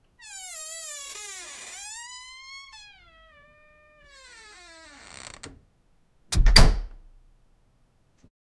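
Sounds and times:
door latch: 6.3s - 7.0s.

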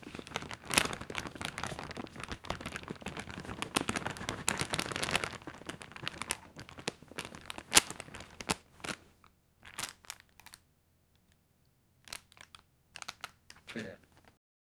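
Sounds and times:
man packing camera in small bag: 0.0s - 9.0s.

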